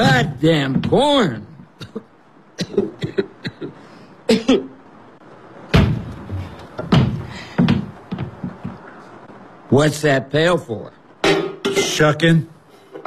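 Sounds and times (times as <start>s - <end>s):
wooden milking stool set down with hollow knocks and thuds: 0.0s - 1.0s, 5.7s - 8.8s
speech: 0.0s - 4.7s, 9.7s - 11.0s, 12.0s - 12.5s.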